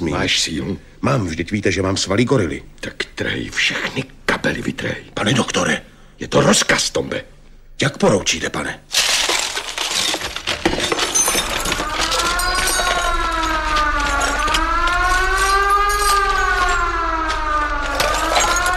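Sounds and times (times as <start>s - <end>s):
speech: 0.0s - 9.0s
crashing and clattering: 8.9s - 18.7s
alarm siren wailing: 11.1s - 18.7s.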